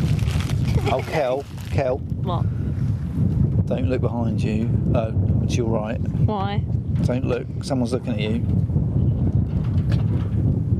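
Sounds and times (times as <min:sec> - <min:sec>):
wind blowing outdoors: 0:00.0 - 0:10.7
speech: 0:00.9 - 0:02.6, 0:03.2 - 0:08.7.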